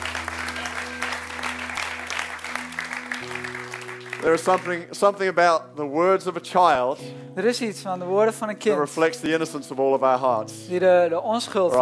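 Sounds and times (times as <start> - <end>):
audience applause: 0.0 - 4.8
speech: 4.2 - 11.8.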